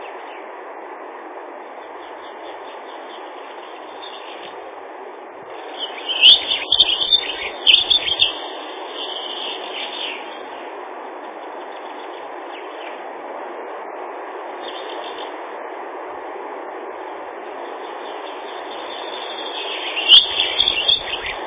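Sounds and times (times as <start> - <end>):
Dunnock song, Prunella modularis, thin high twittering: 1.8 - 4.6, 5.5 - 13.0, 14.5 - 15.4, 17.5 - 21.4.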